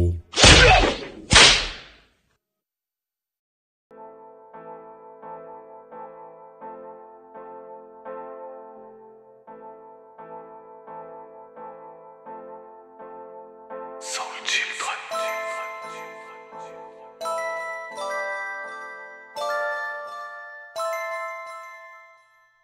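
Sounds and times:
whip cracks: 0.4s - 2.0s
soft steady melodic tune: 3.9s - 22.6s.

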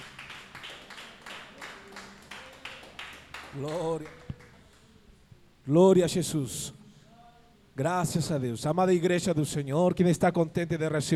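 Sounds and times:
church congregation clapping in a steady rhythm: 0.0s - 4.9s
speech: 3.6s - 4.2s, 5.6s - 6.8s, 7.8s - 11.1s.

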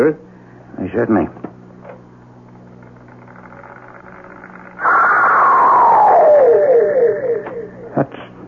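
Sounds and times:
speech: 0.0s - 0.2s, 0.8s - 1.5s
recorded shriek played on a tape machine: 4.5s - 8.2s.

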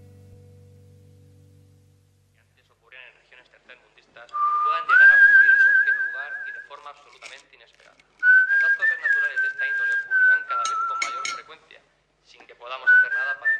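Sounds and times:
person whistling: 4.4s - 6.7s, 8.2s - 11.4s, 12.9s - 13.5s.

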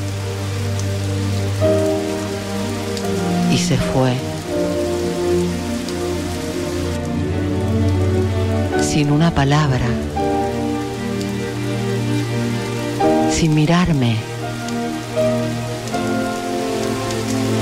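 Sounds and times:
steady rain pattering on a surface: 0.0s - 17.6s
speech: 3.6s - 4.3s, 9.0s - 10.2s, 13.3s - 14.3s.

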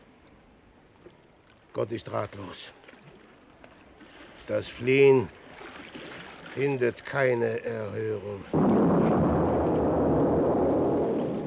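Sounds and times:
speech: 1.8s - 2.8s, 4.5s - 5.4s, 6.5s - 8.6s
ship exploding with rumbling roar: 8.6s - 11.4s.

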